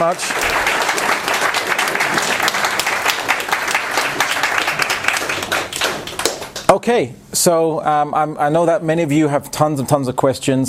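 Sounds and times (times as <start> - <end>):
speech: 0.0 - 1.2, 6.7 - 10.6
audience round of applause: 0.0 - 6.7.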